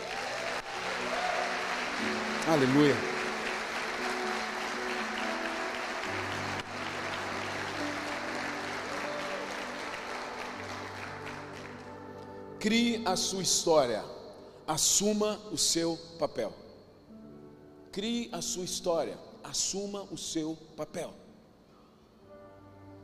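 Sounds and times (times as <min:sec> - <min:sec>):
audience applauding: 0:00.0 - 0:12.3
speech: 0:02.0 - 0:03.1, 0:12.6 - 0:16.6, 0:18.0 - 0:21.2.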